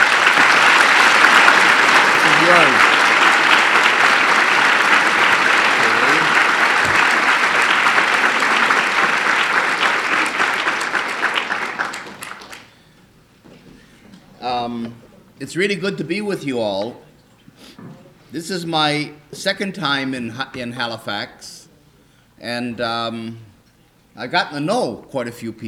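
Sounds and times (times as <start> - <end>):
audience applause welcoming a speaker: 0.0 - 12.7
speech: 15.4 - 17.1, 17.8 - 21.6, 22.4 - 23.5, 24.2 - 25.6.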